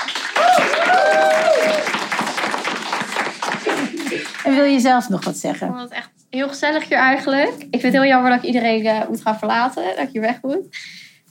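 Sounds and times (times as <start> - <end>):
applause: 0.0 - 5.0
speech: 4.5 - 11.0.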